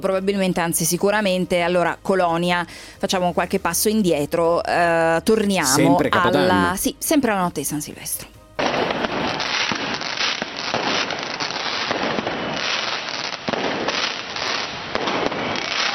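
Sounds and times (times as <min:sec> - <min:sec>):
speech: 0:00.0 - 0:08.4
New Year's Eve fireworks exploding in Cologne Germany: 0:08.6 - 0:15.9.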